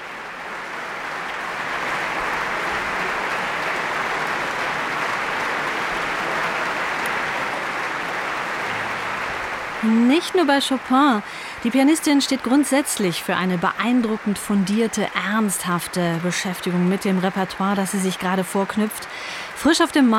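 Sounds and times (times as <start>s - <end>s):
audience applause after a piano performance: 0.0s - 20.1s
speech: 9.8s - 20.1s.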